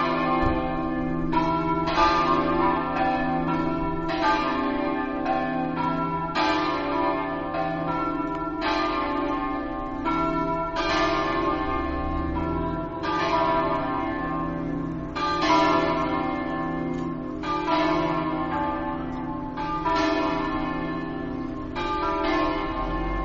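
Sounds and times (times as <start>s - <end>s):
bells ringing: 0.0s - 23.2s.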